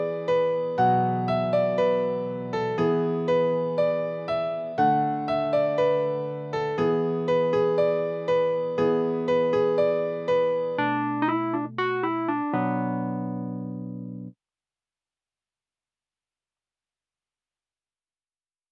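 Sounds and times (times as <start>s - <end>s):
cheerful piano synth: 0.0s - 14.3s.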